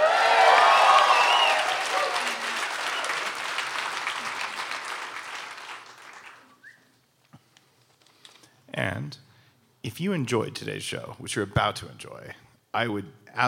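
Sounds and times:
large live audience applauding: 0.0s - 6.7s
speech: 8.8s - 13.4s.

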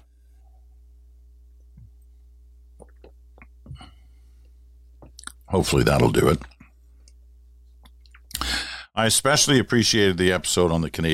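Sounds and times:
steady low hum: 0.0s - 11.1s
person sipping a drink, slurping and swallowing: 2.8s - 3.8s
speech: 5.5s - 6.6s, 9.0s - 11.1s.

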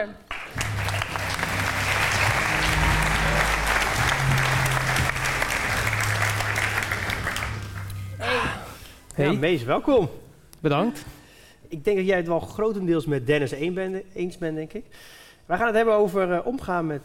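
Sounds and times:
speech: 0.0s - 0.2s, 9.2s - 17.0s
audience applause welcoming a show guest: 0.3s - 8.0s.

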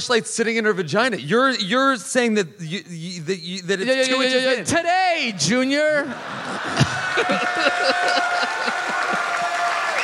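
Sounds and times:
speech: 0.0s - 8.4s
laughter: 5.8s - 10.0s
audience clapping: 6.7s - 10.0s.

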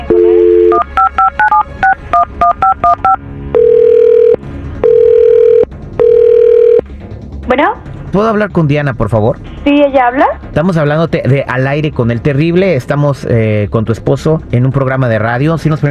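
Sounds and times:
telephone dial tone: 0.0s - 6.8s
speech: 7.5s - 15.9s.

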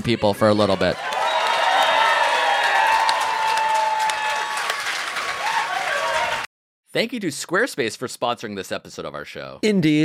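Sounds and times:
speech: 0.0s - 1.2s, 6.9s - 10.0s
audience round of applause: 0.8s - 6.5s.

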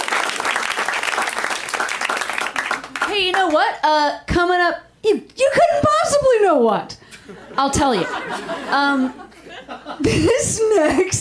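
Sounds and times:
audience applause: 0.0s - 3.2s
speech: 3.2s - 9.2s, 10.0s - 11.1s
laughter: 7.1s - 11.1s.

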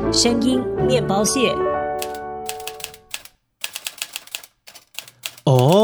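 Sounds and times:
speech: 0.2s - 1.7s
typewriter keystrokes: 2.0s - 5.8s.

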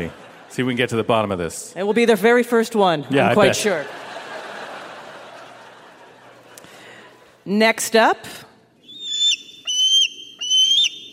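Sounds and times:
laughter: 0.0s - 1.1s, 3.2s - 7.3s
speech: 0.0s - 4.1s, 7.4s - 8.5s
bald eagle calling: 8.8s - 11.1s.

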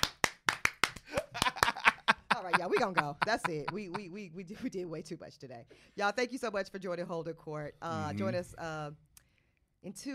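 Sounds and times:
hand clapping: 0.0s - 2.2s
laughter: 1.1s - 4.1s
speech: 2.6s - 9.1s, 9.8s - 10.1s.

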